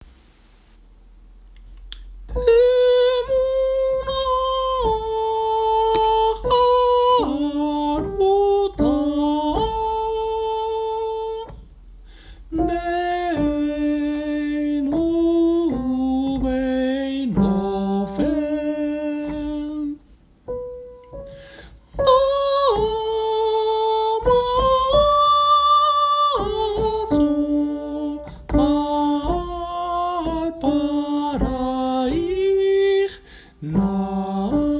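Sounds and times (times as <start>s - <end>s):
alto singing love song: 1.9s - 11.7s, 12.4s - 34.7s.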